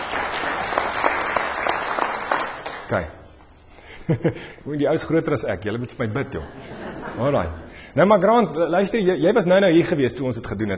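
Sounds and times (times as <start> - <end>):
audience applause: 0.0 - 3.0
speech: 2.9 - 3.2, 4.1 - 10.7
laughter: 6.1 - 7.8.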